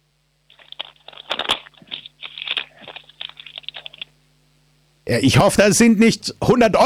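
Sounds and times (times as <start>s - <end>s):
faint steady low hum: 0.0s - 6.8s
sheet of paper being torn: 0.5s - 4.1s
speech: 5.1s - 6.8s.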